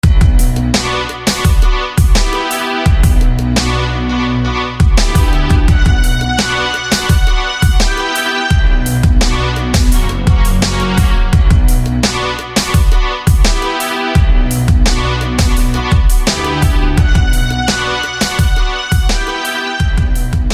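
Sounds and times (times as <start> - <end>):
strings: 0.0 - 20.5.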